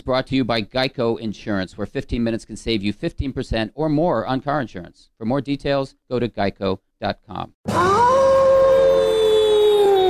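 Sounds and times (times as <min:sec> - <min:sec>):
speech: 0:00.0 - 0:08.1
werewolf howling: 0:07.7 - 0:10.0.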